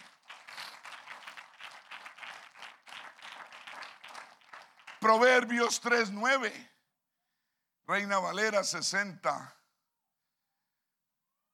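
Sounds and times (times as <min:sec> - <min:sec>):
audience applause: 0:00.0 - 0:05.8
speech: 0:05.0 - 0:06.7, 0:07.9 - 0:09.6.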